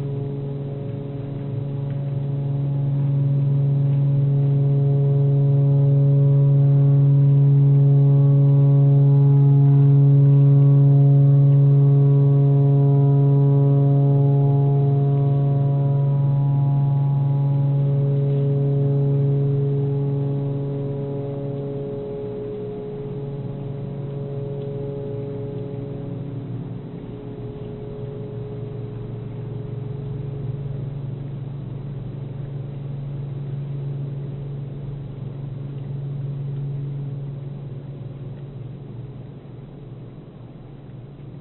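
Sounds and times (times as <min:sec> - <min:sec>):
pentatonic tornado siren: 0:00.0 - 0:32.5.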